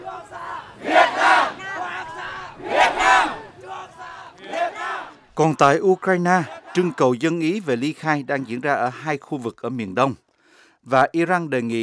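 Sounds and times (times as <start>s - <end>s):
large protest crowd chanting in unison: 0.0s - 8.7s
speech: 5.4s - 10.2s, 10.8s - 11.8s.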